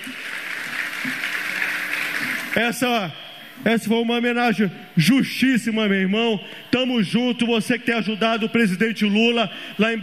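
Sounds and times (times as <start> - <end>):
crowd clapping: 0.0 - 2.9
speech: 2.6 - 10.0.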